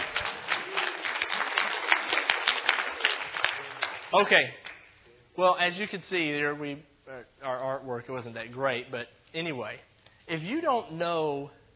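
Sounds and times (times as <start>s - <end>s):
audience clapping: 0.0s - 5.0s
speech: 4.1s - 4.6s, 5.4s - 11.6s.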